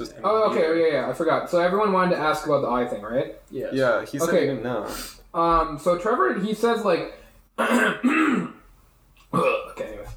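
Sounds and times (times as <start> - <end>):
speech: 0.0 - 8.5, 9.3 - 9.6
person clearing throat: 7.6 - 8.6, 9.3 - 9.9.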